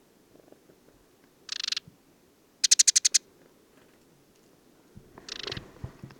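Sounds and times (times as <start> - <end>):
desert sparrow rattling trills: 1.5 - 1.9, 2.6 - 3.2, 5.2 - 6.1
rustling: 3.4 - 6.1.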